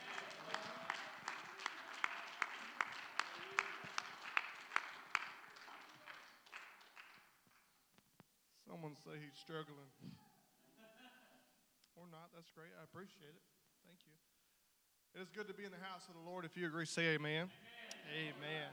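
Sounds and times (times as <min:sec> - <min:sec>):
crowd clapping in rhythm: 0:00.0 - 0:07.7
speech: 0:08.9 - 0:10.2, 0:12.1 - 0:14.3, 0:15.1 - 0:18.7.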